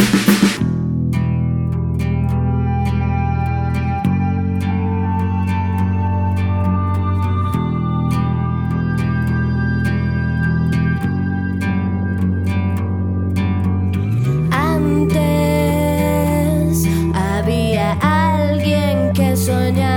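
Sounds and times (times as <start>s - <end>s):
ocarina: 0.2s - 19.9s.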